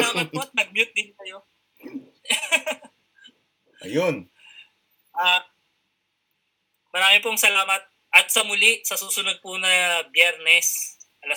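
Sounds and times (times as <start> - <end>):
coughing: 0.0 - 0.6
laughter: 0.0 - 0.6
speech: 0.1 - 2.7, 3.8 - 4.3, 5.2 - 5.5, 7.0 - 11.3.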